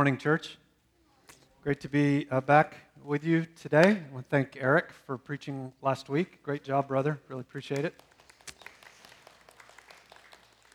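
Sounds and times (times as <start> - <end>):
speech: 0.0 - 0.6, 1.6 - 8.1
small group golf clap, quiet polite clapping: 7.6 - 10.7.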